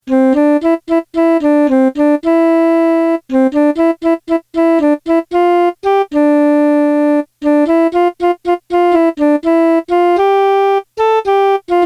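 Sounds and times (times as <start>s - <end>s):
melody: 0.1s - 11.8s.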